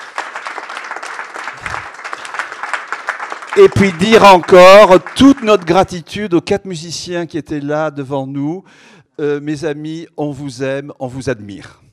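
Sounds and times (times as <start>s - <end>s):
audience applause: 0.0s - 5.8s
speech: 3.6s - 11.8s.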